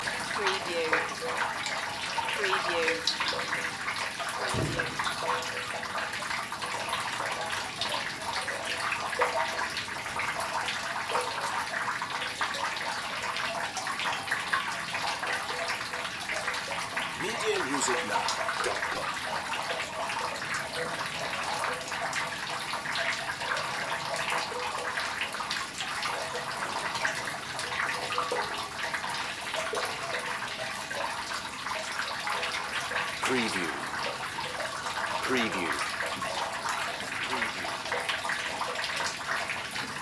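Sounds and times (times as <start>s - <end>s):
rain: 0.0s - 40.0s.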